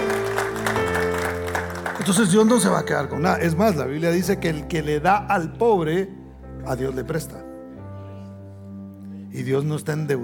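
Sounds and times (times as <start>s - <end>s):
applause: 0.0s - 3.0s
speech: 2.1s - 7.5s, 9.3s - 10.2s.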